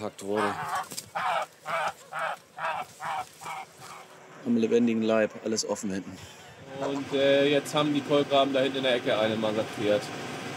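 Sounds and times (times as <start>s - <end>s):
speech: 0.0s - 10.3s
goose honking: 0.3s - 4.1s.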